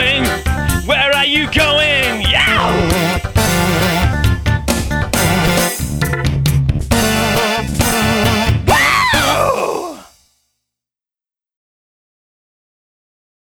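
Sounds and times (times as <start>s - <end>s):
song: 0.0s - 9.4s.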